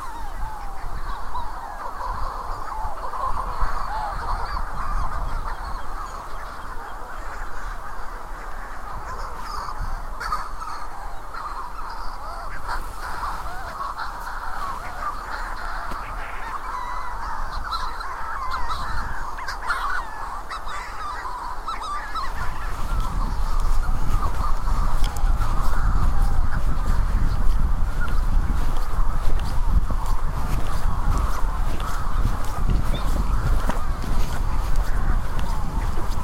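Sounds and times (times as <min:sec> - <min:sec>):
Manx Shearwaters calling in a crowing chorus: 0:00.0 - 0:36.2.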